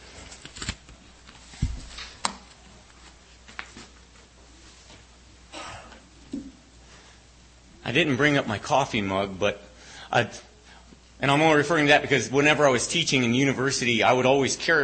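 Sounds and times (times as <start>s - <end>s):
worn paper folder rustling and ripping apart: 0.2s - 0.9s
speech: 7.9s - 10.5s, 11.2s - 14.8s.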